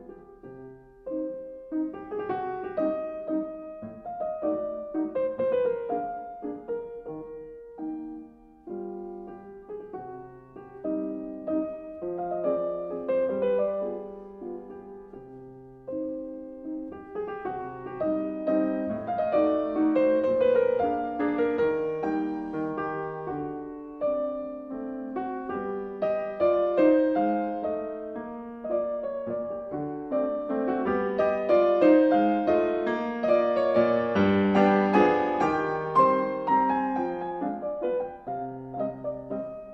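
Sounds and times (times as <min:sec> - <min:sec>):
piano mazurka in C minor: 0:00.0 - 0:39.7.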